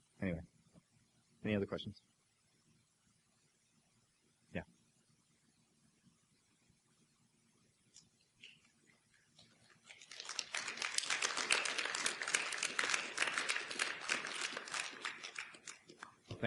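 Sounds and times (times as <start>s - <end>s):
speech: 1.5s - 2.2s
audience clapping: 9.7s - 16.3s.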